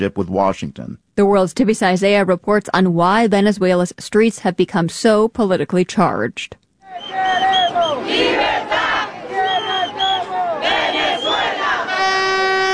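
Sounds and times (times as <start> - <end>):
speech: 0.0 - 7.1
street protest crowd chanting: 6.9 - 12.6.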